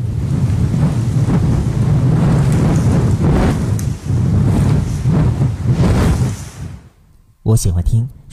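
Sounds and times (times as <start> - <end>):
wind blowing: 0.0 - 7.4
speech: 7.5 - 8.3.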